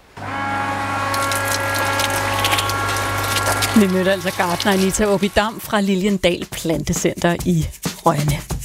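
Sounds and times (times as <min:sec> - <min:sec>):
garden watering machine motor droning: 0:00.0 - 0:06.0
water spray hissing: 0:00.6 - 0:06.1
speech: 0:03.8 - 0:08.5.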